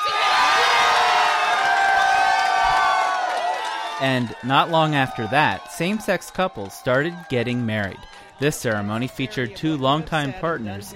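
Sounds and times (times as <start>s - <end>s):
large crowd cheering and whooping: 0.0s - 10.9s
speech: 4.0s - 10.9s.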